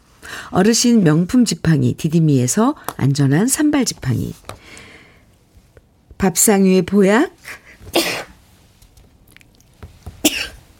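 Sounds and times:
speech: 0.5 - 4.9, 6.2 - 8.1
person sneezing: 7.9 - 8.4, 10.2 - 10.6.

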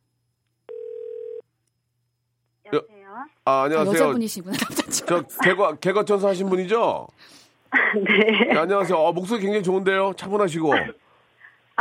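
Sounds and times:
telephone call connecting tone: 0.7 - 1.4
speech: 2.7 - 11.0
laughter: 4.5 - 5.7, 7.7 - 9.0.

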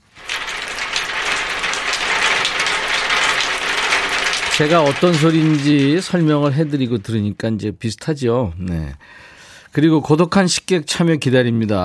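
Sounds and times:
rain pattering on a tin roof: 0.0 - 7.4
speech: 4.6 - 11.8.

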